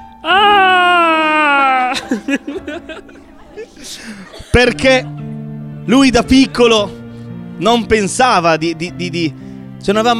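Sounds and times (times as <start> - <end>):
voice imitating a scream of surprise: 0.2 - 2.2
laughter: 1.6 - 5.5
speech: 2.1 - 2.9, 3.8 - 5.2, 5.9 - 7.0, 7.6 - 10.1.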